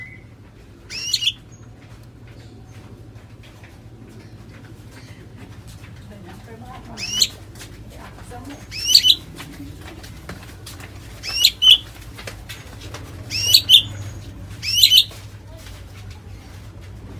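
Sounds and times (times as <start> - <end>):
white-rumped shama song: 0.9 - 1.4, 8.7 - 9.2, 11.3 - 11.9, 13.3 - 14.1, 14.6 - 15.1.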